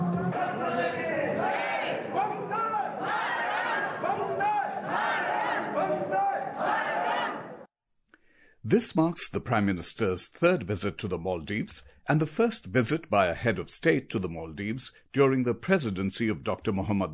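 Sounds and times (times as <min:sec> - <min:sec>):
group of voices chanting at a traditional Maldivian dance welcoming a Prime Minister: 0:00.1 - 0:07.7
speech: 0:08.7 - 0:17.1.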